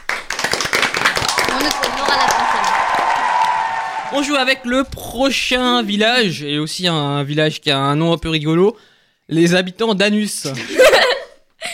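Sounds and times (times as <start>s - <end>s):
audience applause: 0.0s - 4.7s
speech: 1.6s - 2.7s, 4.1s - 11.0s.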